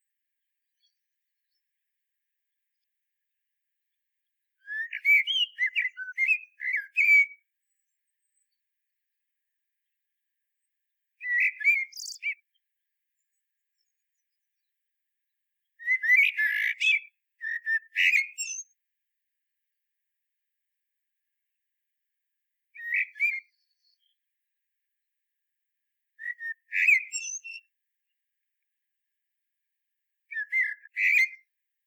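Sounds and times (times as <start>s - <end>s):
common blackbird song of fluted warbled whistles: 4.6s - 8.6s, 11.2s - 12.6s, 15.8s - 18.8s, 22.8s - 24.2s, 26.2s - 27.7s, 30.3s - 31.5s.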